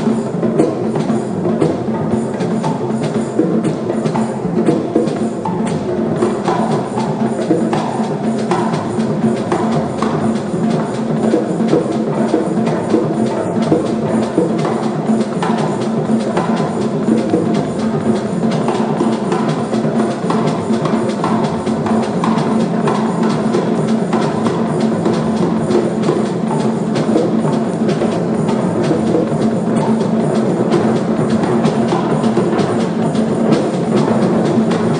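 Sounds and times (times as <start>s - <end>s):
indeterminate percussion: 0.0s - 34.9s.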